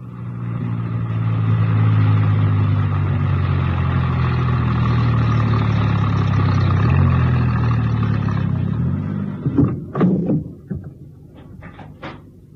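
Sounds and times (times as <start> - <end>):
van engine driving: 0.0 - 12.5
clunks and knocks: 9.2 - 12.5.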